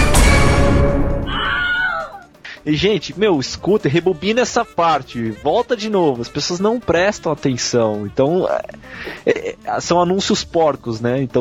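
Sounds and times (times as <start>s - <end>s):
scream sound effect: 0.0s - 2.2s
speech: 2.6s - 11.3s.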